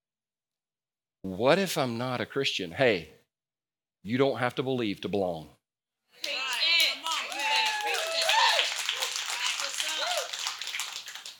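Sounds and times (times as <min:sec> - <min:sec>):
speech: 0:01.2 - 0:03.2, 0:04.0 - 0:05.6
excited voices and whoops: 0:06.2 - 0:10.5
audience clapping: 0:06.2 - 0:11.3.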